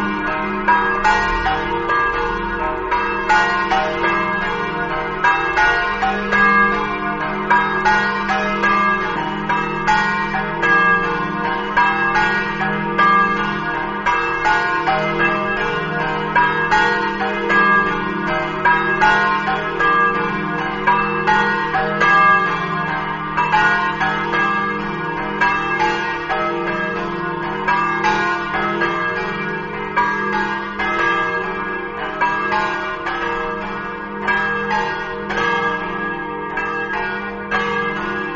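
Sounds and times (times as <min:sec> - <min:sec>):
bells in Barbeano: 0:00.0 - 0:38.3.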